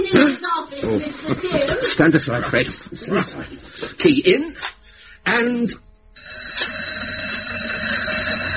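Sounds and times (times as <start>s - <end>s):
speech: 0.1s - 5.8s
school fire alarm bell ringing: 6.2s - 8.5s.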